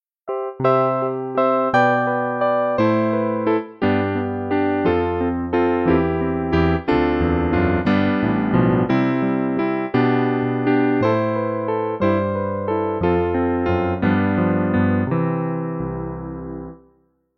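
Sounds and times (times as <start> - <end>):
piano: 0.2 - 17.3.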